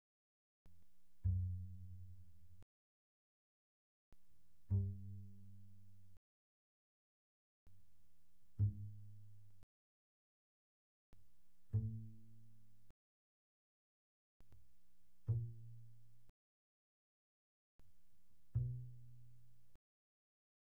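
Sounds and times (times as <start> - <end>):
very soft double bass pizzicato notes on the A string: 1.2 - 2.6, 4.6 - 6.2, 8.5 - 9.6, 11.6 - 12.9, 15.2 - 16.3, 18.5 - 19.8.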